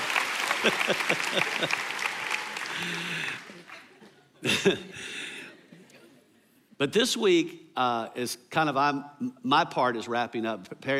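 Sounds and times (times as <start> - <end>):
audience applause: 0.0 - 4.0
laughter: 0.4 - 6.2
speech: 0.6 - 2.0, 2.8 - 3.5, 4.4 - 5.2, 6.8 - 10.9.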